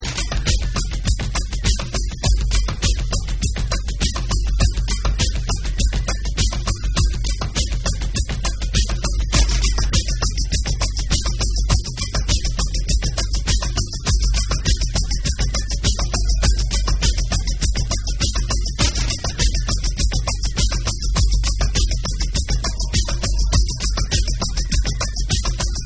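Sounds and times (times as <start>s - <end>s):
jungle beats: 0.0s - 25.8s.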